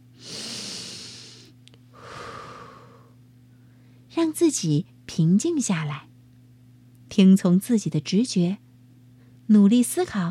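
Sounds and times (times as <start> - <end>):
deep breathing shown to a child: 0.2 - 4.0
speech: 4.2 - 6.1, 7.1 - 8.6, 9.5 - 10.3.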